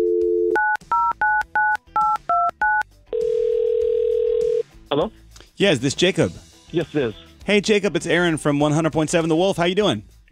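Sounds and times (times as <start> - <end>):
telephone dial tone: 0.0 - 1.7, 2.6 - 4.6
speech: 5.0 - 10.3.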